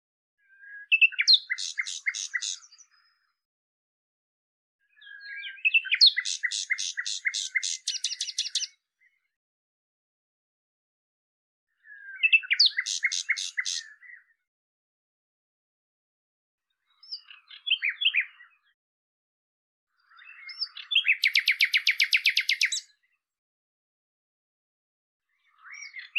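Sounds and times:
Common nightingale song with chirps and rattling series: 0:00.9 - 0:03.0, 0:05.0 - 0:08.7, 0:12.2 - 0:14.2, 0:20.6 - 0:22.9.

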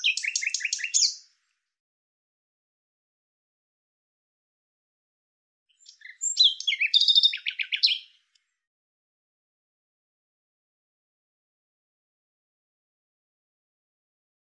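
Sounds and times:
bird singing buzzy chirps: 0:00.0 - 0:01.3, 0:05.8 - 0:08.2.

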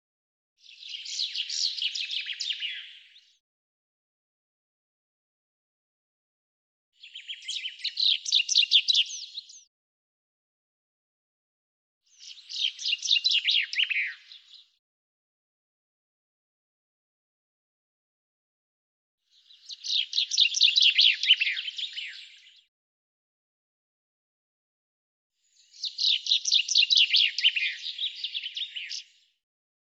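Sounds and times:
bird chirping song: 0:00.6 - 0:03.4, 0:07.0 - 0:09.7, 0:12.0 - 0:14.8, 0:19.3 - 0:22.7, 0:25.4 - 0:29.4.

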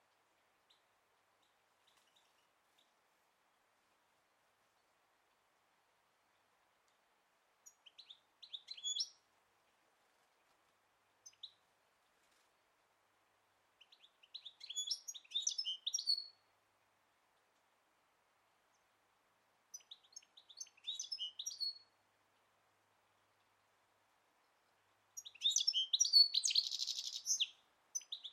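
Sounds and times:
bird giving high scratchy twitters and sweeping chirps: 0:07.7 - 0:09.2, 0:14.3 - 0:16.3, 0:19.8 - 0:21.8, 0:25.2 - 0:28.3.

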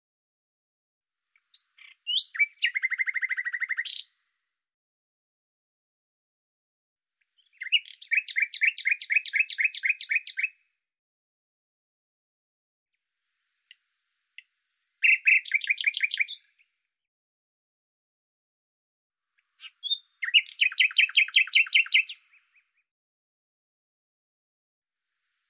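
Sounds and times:
bird giving rapid crisp trills: 0:01.8 - 0:04.1, 0:07.5 - 0:10.5, 0:13.3 - 0:16.4, 0:19.6 - 0:22.2.

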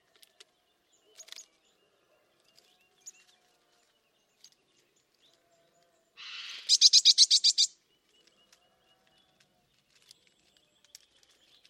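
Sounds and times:
faint scattered bird chirps: 0:00.2 - 0:11.6.

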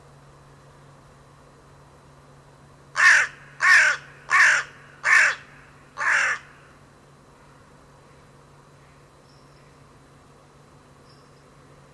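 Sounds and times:
faint low hum: 0:00.0 - 0:11.9
bird cawing: 0:03.0 - 0:06.8.

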